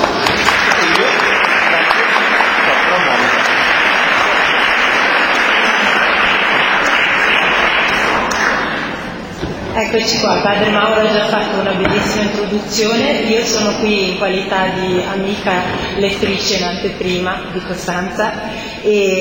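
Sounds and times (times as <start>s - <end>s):
audience applause: 0.0s - 9.1s
speech: 9.9s - 19.2s.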